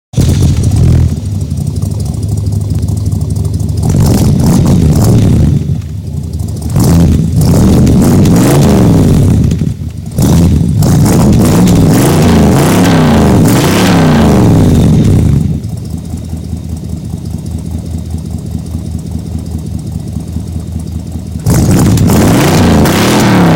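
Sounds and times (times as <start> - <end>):
1971 Ford LTD: 0.1 - 23.5.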